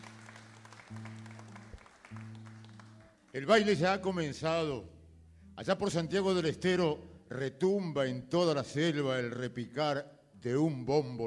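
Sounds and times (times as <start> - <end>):
applause: 0.0 - 3.8
speech: 3.3 - 4.9, 5.6 - 11.2.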